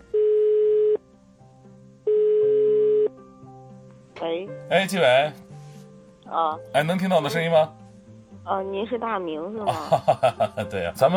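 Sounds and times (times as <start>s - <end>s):
telephone busy signal tone: 0.1s - 1.0s, 2.1s - 3.1s
speech: 4.2s - 5.4s, 6.3s - 7.8s, 8.4s - 11.1s
laughter: 9.7s - 11.1s.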